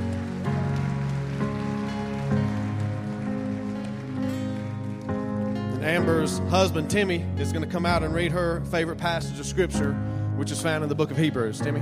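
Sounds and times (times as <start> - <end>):
audience applause: 0.0 - 6.3
speech: 5.8 - 11.8.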